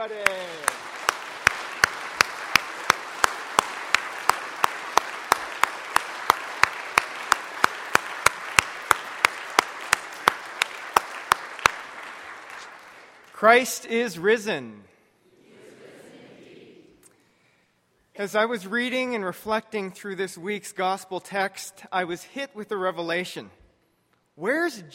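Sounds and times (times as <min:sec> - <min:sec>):
speech: 0:00.0 - 0:00.9, 0:13.4 - 0:14.9, 0:18.2 - 0:23.6, 0:24.4 - 0:24.9
audience clapping hands in church: 0:00.0 - 0:13.8.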